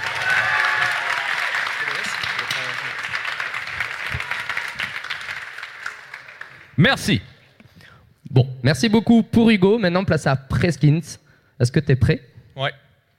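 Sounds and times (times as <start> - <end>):
audience applause for applause meter: 0.0 - 6.8
speech: 6.8 - 7.3, 8.6 - 12.8.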